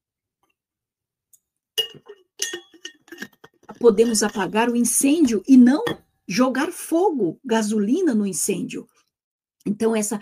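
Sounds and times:
glass clinking as someone drinks water: 1.8 - 4.6, 5.2 - 6.1
speech: 3.8 - 9.0, 9.8 - 10.2.

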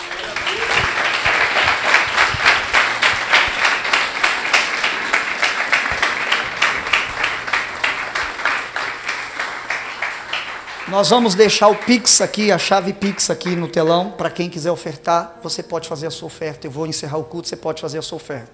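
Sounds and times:
audience applause: 0.0 - 12.4
speech: 11.0 - 18.5.

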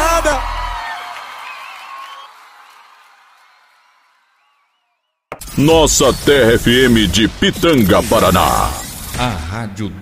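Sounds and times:
crowd clapping: 0.0 - 4.9
speech: 5.4 - 10.0.

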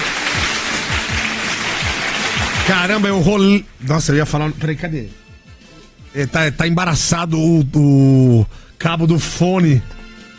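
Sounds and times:
applause: 0.0 - 3.2
speech: 2.7 - 5.2, 6.1 - 10.0.

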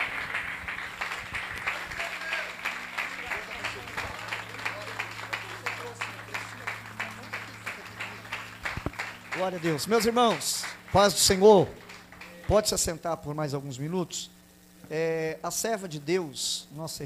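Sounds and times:
audience applauding: 0.0 - 12.9
speech: 9.4 - 11.8, 12.5 - 17.0.

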